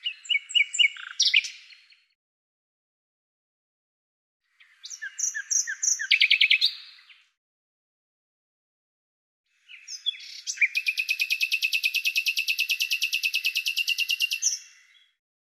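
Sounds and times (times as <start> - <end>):
bird singing sharp chirps buzzy trills and rapid repeated notes: 0.0 - 2.0, 4.6 - 7.2, 9.6 - 15.2.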